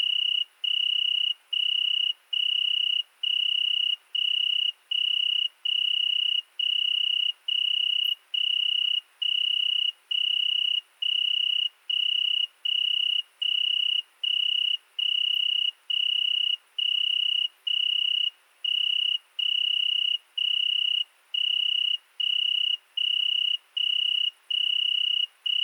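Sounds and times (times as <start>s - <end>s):
Italian tree cricket trilling: 0.0s - 25.6s.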